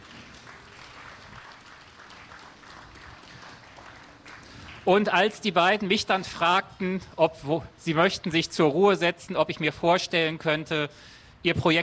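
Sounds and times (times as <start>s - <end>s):
audience applause: 0.0s - 5.1s
speech: 4.8s - 11.8s.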